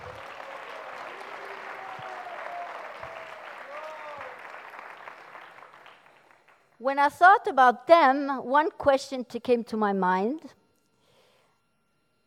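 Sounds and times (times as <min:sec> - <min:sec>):
audience applause: 0:00.0 - 0:06.7
speech: 0:06.8 - 0:10.6.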